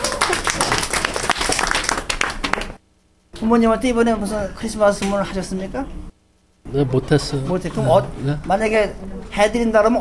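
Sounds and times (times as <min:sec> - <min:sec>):
audience applause: 0:00.0 - 0:02.8
speech: 0:03.4 - 0:06.1, 0:06.7 - 0:09.9.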